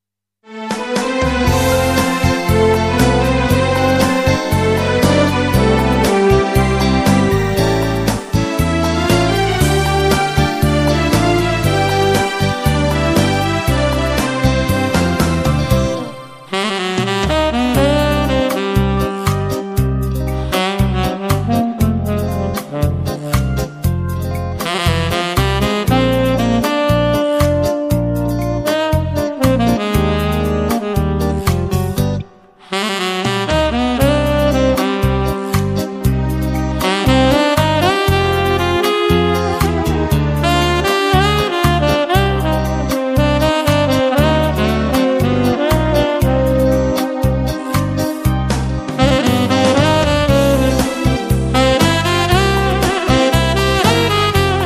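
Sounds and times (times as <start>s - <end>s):
nostalgic saxophone: 0.5s - 54.6s.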